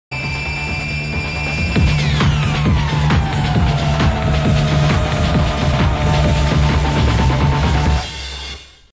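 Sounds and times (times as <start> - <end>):
intro music: 0.1 - 8.9.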